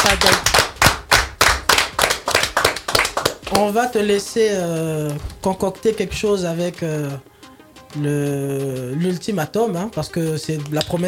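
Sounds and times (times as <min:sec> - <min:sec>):
applause: 0:00.0 - 0:03.7
speech: 0:03.5 - 0:07.3, 0:07.9 - 0:11.0.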